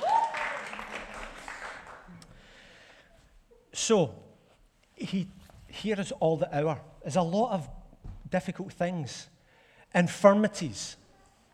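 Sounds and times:
round of applause: 0.0s - 2.5s
speech: 3.8s - 4.2s, 5.0s - 9.3s, 9.9s - 11.0s.

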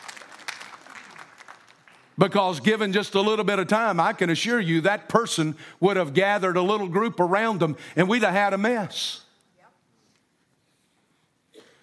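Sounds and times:
audience applause: 0.0s - 2.2s
speech: 2.2s - 9.2s.

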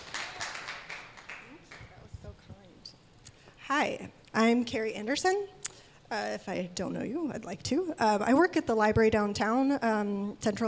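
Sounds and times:
audience clapping: 0.0s - 2.0s
speech: 3.7s - 10.6s.

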